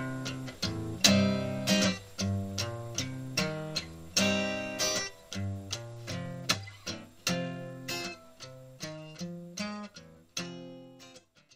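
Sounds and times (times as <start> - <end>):
slow minor blues on guitar: 0.0 - 11.5.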